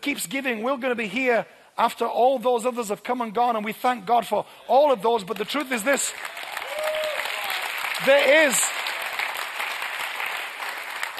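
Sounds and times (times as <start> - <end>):
speech: 0.0 - 6.4, 8.0 - 8.6
church congregation clapping during a sermon: 5.2 - 11.1.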